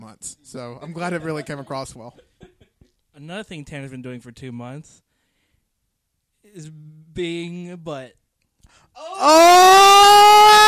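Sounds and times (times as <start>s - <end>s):
speech: 0.1s - 2.3s, 3.2s - 5.1s, 6.4s - 10.6s
person screaming into a microphone: 9.0s - 10.6s.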